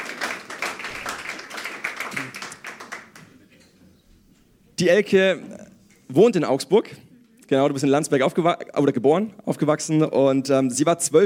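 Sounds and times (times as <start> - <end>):
audience applause: 0.0 - 3.4
speech: 4.8 - 5.5, 6.1 - 11.2.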